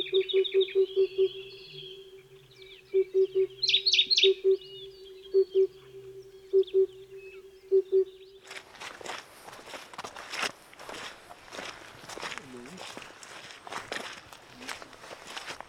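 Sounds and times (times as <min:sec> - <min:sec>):
low hollow repeated notes: 0:00.0 - 0:08.5
small passerine songbirds chirping and trilling: 0:00.0 - 0:09.5, 0:10.8 - 0:15.6.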